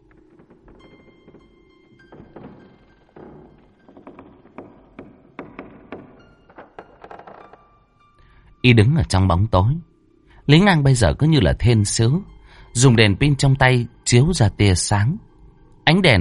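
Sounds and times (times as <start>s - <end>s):
hollow thunks and light knocks: 0.0s - 7.9s
door creaking open: 0.0s - 8.3s
speech: 8.6s - 9.9s, 10.5s - 15.3s, 15.9s - 16.1s.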